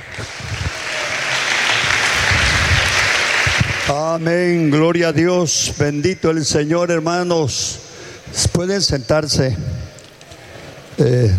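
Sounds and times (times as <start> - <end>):
audience applause: 0.0 - 4.7
speech: 3.9 - 9.8, 11.0 - 11.3.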